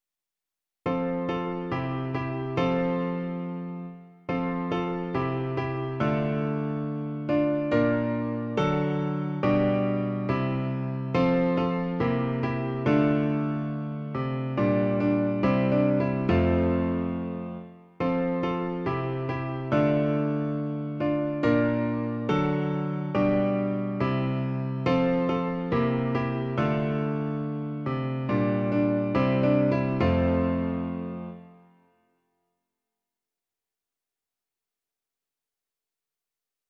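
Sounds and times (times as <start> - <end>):
piano version: 0.9 - 31.7.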